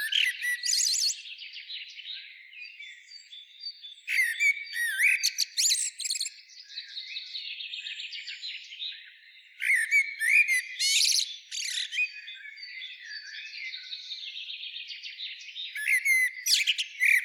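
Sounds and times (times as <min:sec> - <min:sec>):
common blackbird calling: 0:00.0 - 0:01.2, 0:04.1 - 0:06.3, 0:09.6 - 0:12.3, 0:15.8 - 0:17.2
birds chorus: 0:00.0 - 0:17.2.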